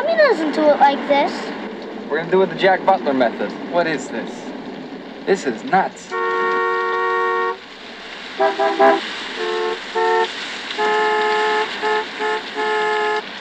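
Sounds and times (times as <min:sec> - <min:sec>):
speech: 0:00.3 - 0:01.5, 0:02.1 - 0:04.4, 0:05.3 - 0:06.3, 0:08.4 - 0:09.5
car horns honking: 0:06.1 - 0:07.7, 0:08.3 - 0:13.3.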